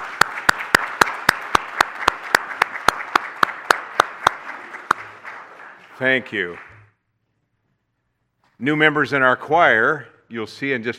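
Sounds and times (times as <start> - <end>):
audience applause: 0.0 - 6.8
speech: 6.0 - 6.7, 8.6 - 10.9.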